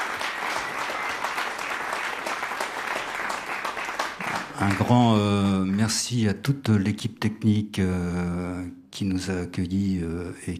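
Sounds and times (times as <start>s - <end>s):
applause: 0.0s - 5.8s
speech: 4.6s - 10.5s.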